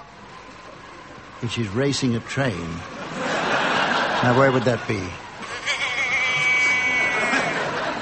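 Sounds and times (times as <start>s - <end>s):
speech: 1.4s - 3.0s, 4.2s - 5.2s
laughter: 2.8s - 7.9s
sheep bleating: 5.5s - 7.6s.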